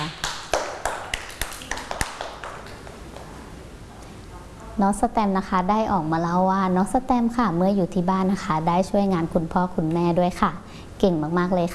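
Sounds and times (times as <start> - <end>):
group of children clapping: 0.0 - 3.3
speech: 4.8 - 11.7.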